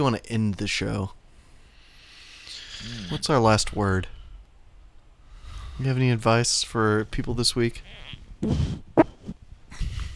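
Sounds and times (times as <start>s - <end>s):
speech: 0.0s - 1.2s, 2.8s - 4.2s, 5.8s - 8.9s
fart into the microphone: 8.4s - 9.4s.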